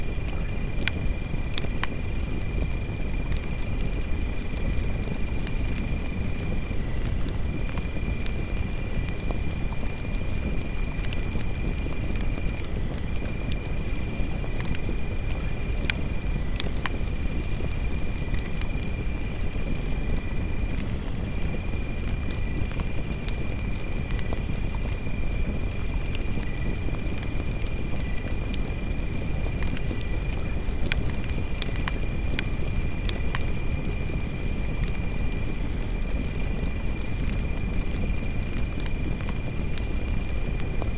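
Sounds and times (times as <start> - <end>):
campfire at night: 0.0 - 40.9.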